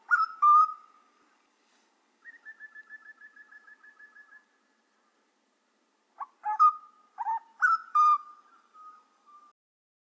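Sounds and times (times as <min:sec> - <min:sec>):
grey butcherbird song: 0:00.0 - 0:01.5, 0:02.2 - 0:05.3, 0:06.2 - 0:09.5.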